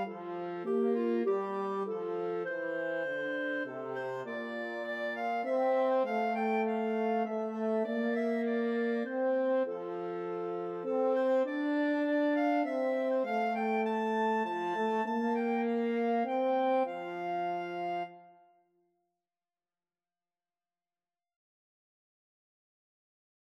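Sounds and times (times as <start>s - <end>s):
French horn in a clarinet and French horn duet: 0.0s - 18.2s
clarinet in a clarinet and French horn duet: 0.0s - 18.7s.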